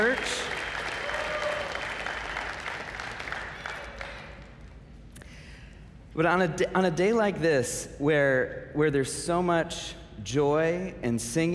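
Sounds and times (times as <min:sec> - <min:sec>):
audience applauding: 0:00.0 - 0:04.7
speech: 0:06.2 - 0:11.5.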